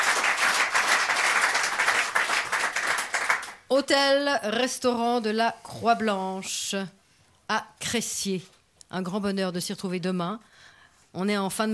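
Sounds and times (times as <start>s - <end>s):
audience applause: 0.0s - 3.6s
speech: 3.7s - 11.7s.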